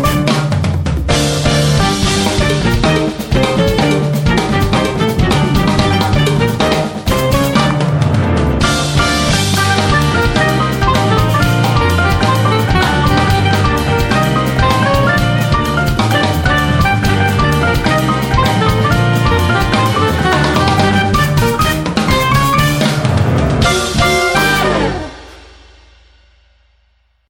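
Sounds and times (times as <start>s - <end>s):
saxophone quartet playing Latin show music: 0.0s - 0.5s, 1.2s - 7.9s, 8.6s - 23.0s, 23.6s - 25.3s.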